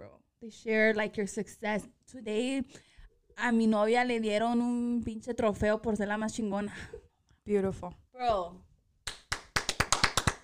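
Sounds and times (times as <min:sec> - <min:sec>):
speech: 0:00.4 - 0:08.7
hand claps: 0:09.0 - 0:10.4.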